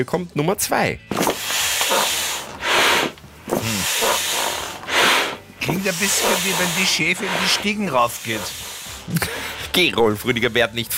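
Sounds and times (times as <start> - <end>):
speech: 0.0 - 1.2, 5.7 - 10.9
foot pump inflating an inflatable pool animal: 1.1 - 9.7.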